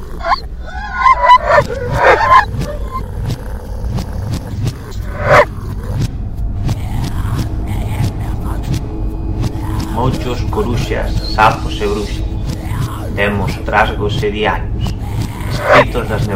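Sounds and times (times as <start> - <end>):
steady low hum: 0.0 - 16.3
dog barking: 0.2 - 3.0
speech: 10.1 - 12.2, 13.2 - 14.7, 15.6 - 16.3.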